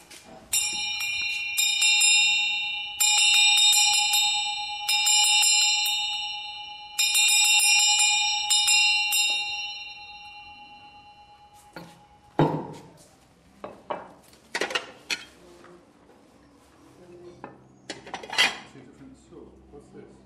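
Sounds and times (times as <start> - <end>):
handbell rung as a wake-up bell: 0.5 - 12.4.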